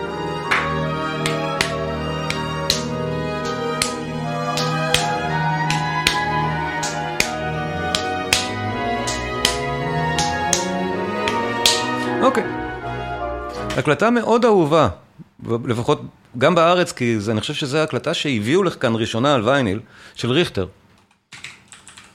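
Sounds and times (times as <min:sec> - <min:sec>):
steady hand claps keeping time: 0:00.0 - 0:12.2
recorded piano music: 0:00.0 - 0:14.2
speech: 0:13.8 - 0:20.8.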